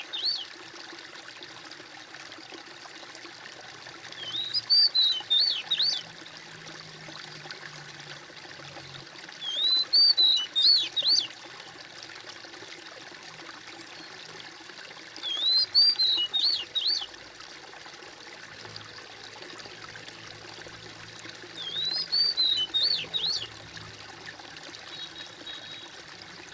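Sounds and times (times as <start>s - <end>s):
bird whistling: 0.0s - 0.4s, 4.2s - 6.0s, 9.4s - 11.3s, 15.2s - 17.1s, 21.6s - 23.5s, 24.9s - 25.9s.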